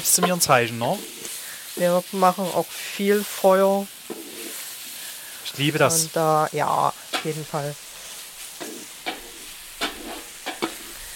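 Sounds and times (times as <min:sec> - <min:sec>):
speech: 0:00.0 - 0:01.2, 0:01.8 - 0:04.2, 0:05.5 - 0:07.8
scraping stirs: 0:00.0 - 0:01.9, 0:04.0 - 0:04.8, 0:08.4 - 0:11.1
onions and meat sweating in a pot: 0:00.0 - 0:11.1.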